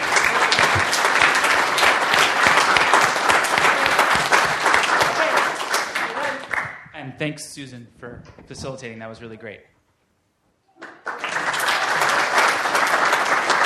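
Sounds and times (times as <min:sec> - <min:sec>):
audience applause after a group discussion: 0:00.0 - 0:06.8, 0:10.8 - 0:13.6
speech: 0:07.2 - 0:09.8.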